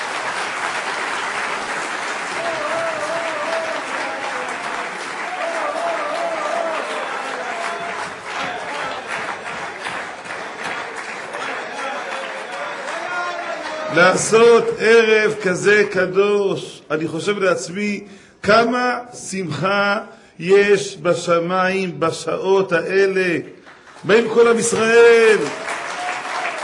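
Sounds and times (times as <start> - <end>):
audience applause: 0.0 - 14.5, 23.6 - 26.6
speech: 14.0 - 25.6.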